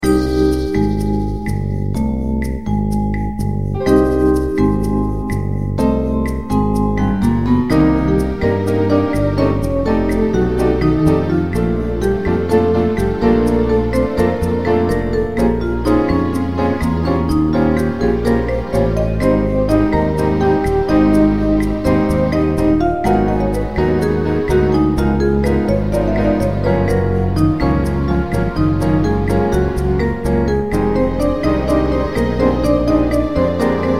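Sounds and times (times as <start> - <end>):
elevator music: 0.0 - 33.9.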